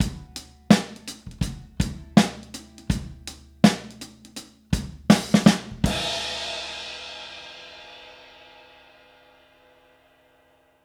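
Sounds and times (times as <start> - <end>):
70s analog funk soul drums ending: 0.0 - 8.2.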